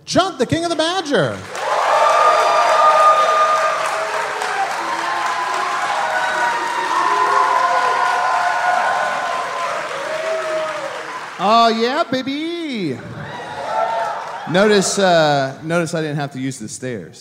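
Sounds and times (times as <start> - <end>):
speech: 0.1 - 1.6, 11.4 - 13.2, 14.5 - 17.1
crowd applauding: 1.1 - 15.4
cheering and whoops: 1.5 - 11.4, 13.0 - 14.8.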